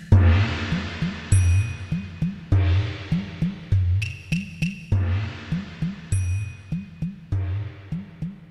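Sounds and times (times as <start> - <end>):
Chinese gong: 0.1 - 3.5, 4.9 - 7.5.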